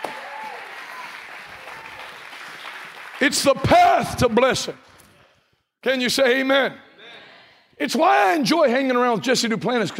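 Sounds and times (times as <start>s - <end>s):
audience applause: 0.0s - 3.7s
speech: 3.2s - 4.9s, 5.8s - 6.9s, 7.8s - 9.9s.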